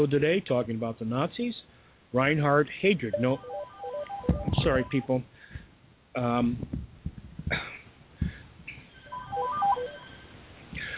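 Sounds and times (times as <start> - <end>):
speech: 0.0 - 3.6, 4.4 - 5.4, 6.2 - 6.9
phone ringtone electronic melody: 3.1 - 5.1, 9.0 - 10.3
cough or throat clearing: 7.5 - 7.9.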